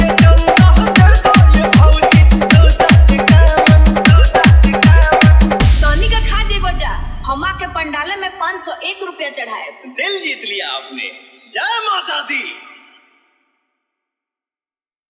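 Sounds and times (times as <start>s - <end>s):
Hi-Fi dholak mix of a Navratri song: 0.0s - 7.9s.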